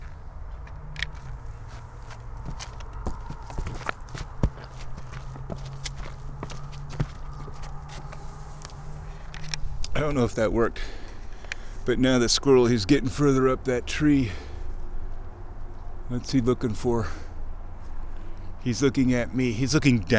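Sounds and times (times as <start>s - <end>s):
squishy footsteps outdoors near a tree: 0.0s - 8.8s
speech: 10.0s - 11.0s, 11.9s - 14.4s, 16.1s - 17.2s, 18.6s - 20.1s.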